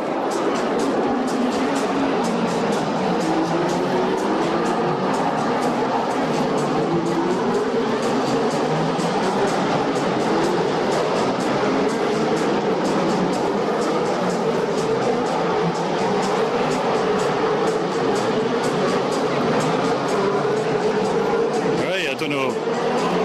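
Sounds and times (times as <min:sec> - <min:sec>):
Formula One cars roaring past at full speed: 0:00.0 - 0:23.2.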